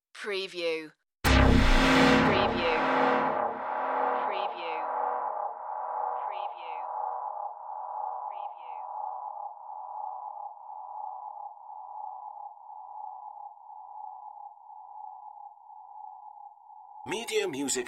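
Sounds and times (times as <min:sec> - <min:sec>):
dark impact: 0:01.3 - 0:08.5.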